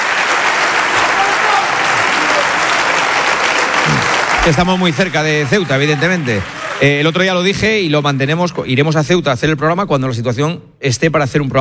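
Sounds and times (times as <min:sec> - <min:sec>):
crowd applause: 0:00.0 - 0:08.5
speech: 0:04.4 - 0:11.5.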